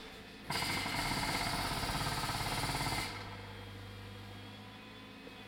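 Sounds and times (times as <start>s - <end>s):
pneumatic jackhammer: 0.5s - 4.2s.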